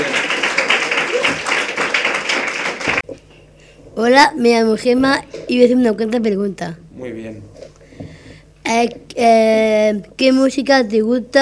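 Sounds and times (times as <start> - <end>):
applause: 0.0 - 3.1
speech: 4.0 - 7.5, 8.7 - 11.3.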